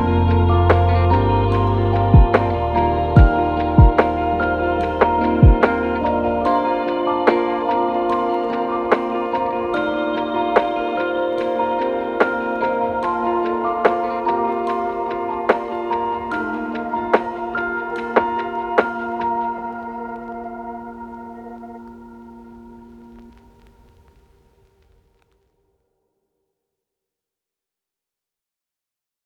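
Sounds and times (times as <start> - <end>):
lofi hip hop: 0.0 - 22.1.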